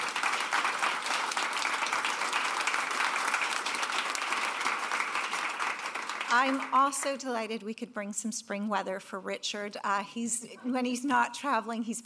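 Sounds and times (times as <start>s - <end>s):
audience round of applause: 0.0s - 7.1s
speech: 6.3s - 12.0s.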